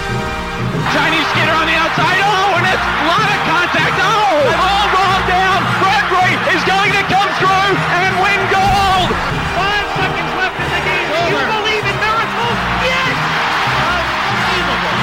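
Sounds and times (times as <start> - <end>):
arena crowd applauding: 0.1 - 15.0.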